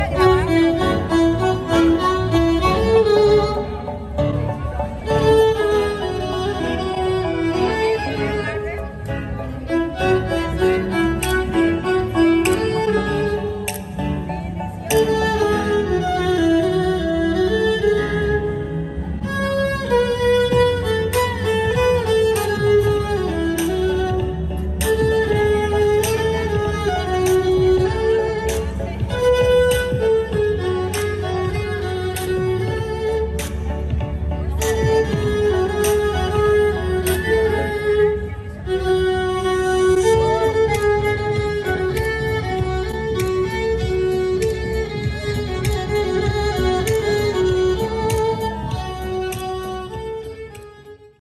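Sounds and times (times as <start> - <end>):
violin: 0.0 - 51.2.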